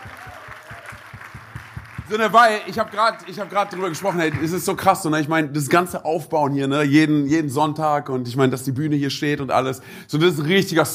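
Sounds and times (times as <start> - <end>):
audience applause: 0.0 - 4.7
speech: 2.1 - 10.9.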